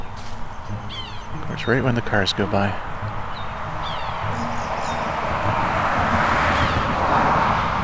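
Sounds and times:
sapsucker kia call: 0:00.0 - 0:07.7
speech: 0:01.5 - 0:02.9.

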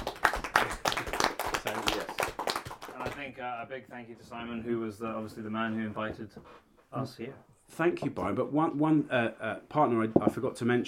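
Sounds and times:
round of applause, clapping: 0:00.0 - 0:03.4
speech: 0:03.4 - 0:10.8.

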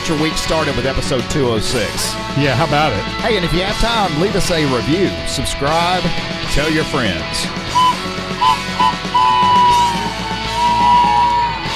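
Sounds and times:
speech: 0:00.1 - 0:09.1
train whistle: 0:07.7 - 0:11.7.

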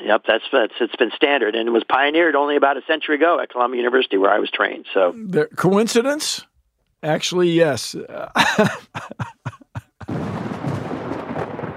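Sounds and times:
speech: 0:00.1 - 0:09.4
laughter: 0:08.0 - 0:10.2
thunder sound effect: 0:10.1 - 0:11.7.

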